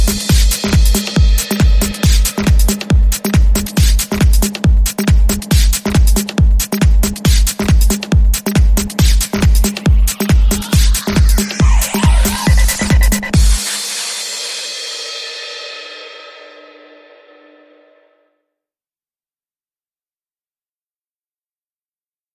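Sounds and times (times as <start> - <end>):
pubstep beat: 0.0 - 15.1.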